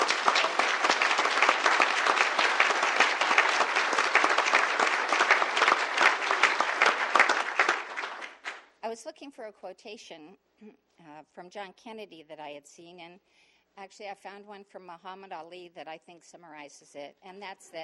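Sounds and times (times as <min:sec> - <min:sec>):
audience applause: 0:00.0 - 0:08.7
speech: 0:09.0 - 0:17.8.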